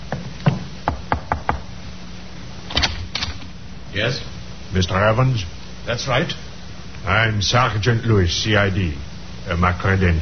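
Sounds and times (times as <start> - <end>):
knocking on a door: 0.1 - 1.7
speech: 3.9 - 10.2.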